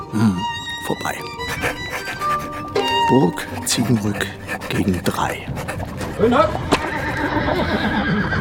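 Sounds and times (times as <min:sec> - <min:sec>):
speech: 0:00.2 - 0:01.4, 0:03.1 - 0:06.7, 0:07.5 - 0:08.3
horse neighing: 0:06.6 - 0:08.3.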